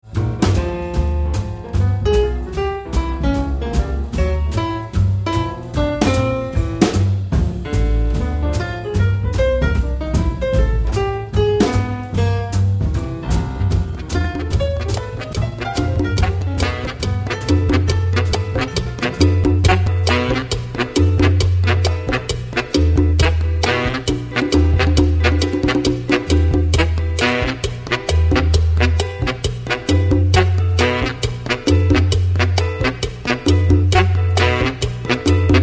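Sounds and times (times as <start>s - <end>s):
jazz turning into salsa music: 0.0s - 35.6s.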